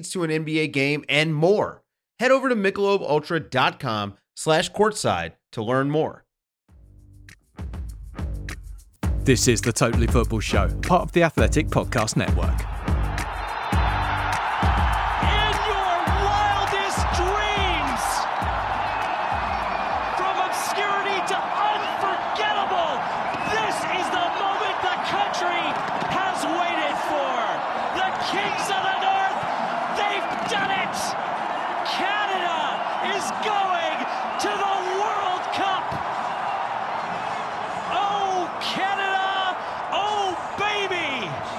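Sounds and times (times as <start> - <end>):
speech: 0.0 - 6.2, 9.3 - 12.8
Canadian crowd cheering and chanting after a win over Jamaica: 9.3 - 41.5.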